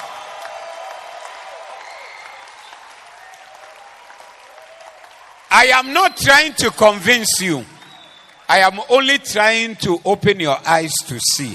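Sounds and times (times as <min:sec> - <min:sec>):
audience clapping: 0:00.0 - 0:09.2
speech: 0:05.6 - 0:07.7, 0:08.5 - 0:11.5.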